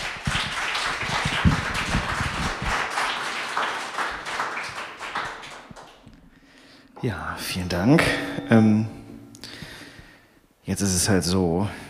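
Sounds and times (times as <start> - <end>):
crowd applause: 0.0 - 6.1
speech: 7.0 - 9.0, 10.7 - 11.8.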